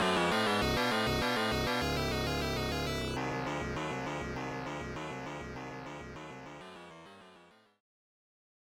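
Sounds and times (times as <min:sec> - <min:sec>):
battle music: 0:00.0 - 0:06.4.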